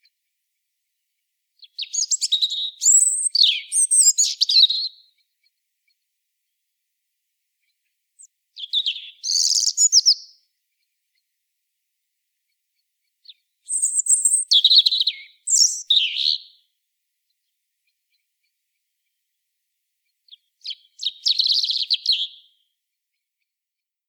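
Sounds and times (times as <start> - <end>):
European robin singing: 1.6 - 5.3, 8.2 - 10.5, 13.2 - 16.7, 20.3 - 22.6.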